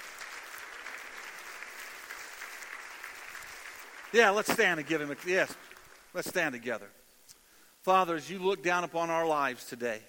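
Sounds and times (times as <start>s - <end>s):
audience applause: 0.0s - 6.1s
speech: 4.1s - 7.0s, 7.8s - 10.0s.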